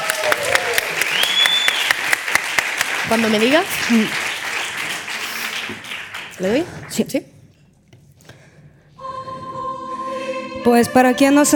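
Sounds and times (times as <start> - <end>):
crowd applauding: 0.0 - 7.0
thin high whistling tone: 1.1 - 2.0
speech: 3.1 - 4.2, 5.7 - 7.3, 10.6 - 11.5.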